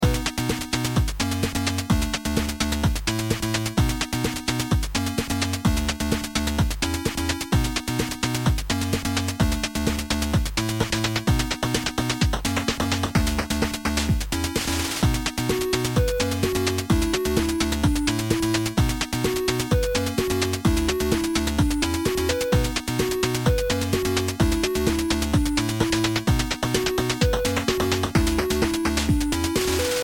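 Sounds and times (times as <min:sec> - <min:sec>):
music beat: 0:00.0 - 0:30.0.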